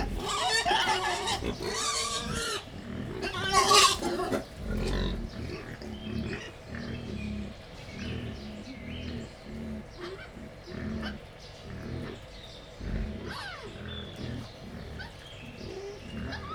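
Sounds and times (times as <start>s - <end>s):
wild boar grunting: 0.0s - 16.5s.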